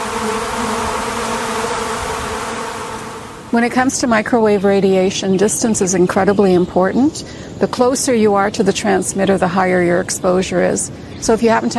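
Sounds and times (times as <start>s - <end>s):
steady low hum: 0.0s - 3.9s
agitated honeybee colony buzzing at the hive entrance: 0.0s - 4.2s
speech: 3.6s - 11.7s.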